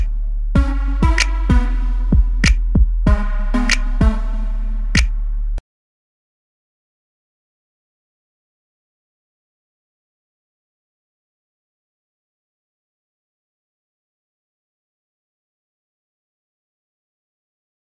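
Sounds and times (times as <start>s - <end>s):
music: 0.0s - 5.6s.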